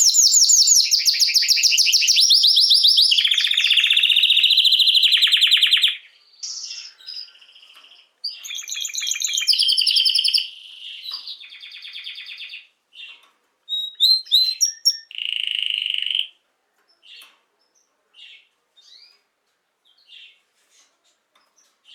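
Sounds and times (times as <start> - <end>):
Belgian canary singing trills: 0.0 - 16.3.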